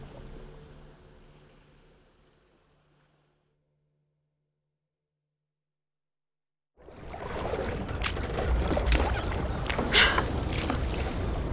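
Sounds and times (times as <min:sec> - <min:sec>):
oars rowing a boat on water: 0:06.8 - 0:11.5.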